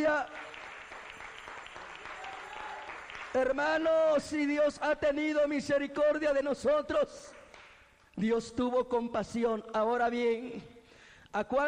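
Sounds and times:
speech: 0.0 - 0.6, 3.4 - 7.4, 8.2 - 11.6
church congregation applauding in praise: 0.0 - 4.2, 7.2 - 7.8.

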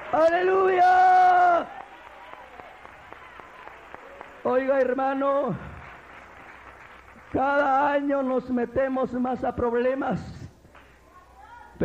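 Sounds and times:
audience clapping and cheering: 0.0 - 9.0
speech: 0.1 - 1.8, 4.4 - 5.7, 7.3 - 10.4.

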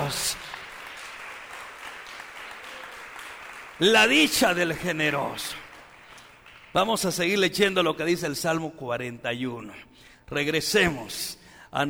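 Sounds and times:
audience applause: 0.0 - 6.8
speech: 3.8 - 5.6, 6.7 - 11.8.

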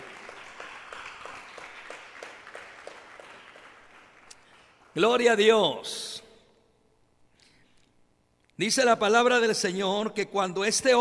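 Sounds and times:
audience applauding: 0.0 - 5.0
speech: 5.0 - 6.1, 8.6 - 10.9.

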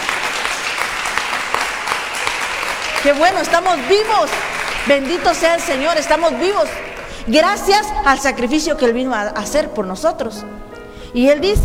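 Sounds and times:
church congregation clapping hands in praise: 0.0 - 8.6
speech: 3.0 - 11.6.

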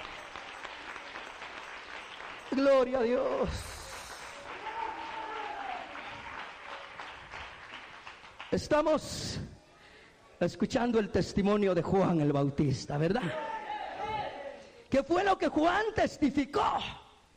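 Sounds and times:
audience applauding: 0.0 - 8.7
speech: 2.5 - 3.7, 8.5 - 9.5, 10.4 - 13.5, 14.9 - 17.0.

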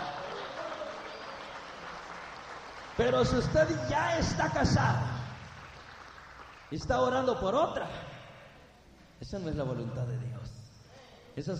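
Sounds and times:
faint cheering: 0.0 - 1.9
audience applause: 0.0 - 6.7
speech: 3.0 - 5.2, 6.7 - 8.0, 9.2 - 10.6, 11.4 - 11.5.

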